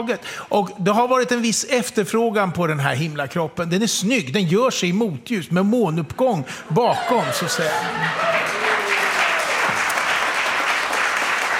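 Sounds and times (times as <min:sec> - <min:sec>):
speech: 0:00.0 - 0:08.5
audience applause: 0:07.0 - 0:11.5.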